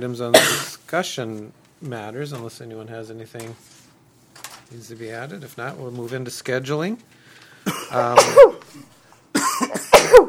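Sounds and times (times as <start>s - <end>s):
speech: 0.0s - 3.8s, 4.7s - 7.2s, 7.9s - 8.9s
person sneezing: 7.7s - 10.2s.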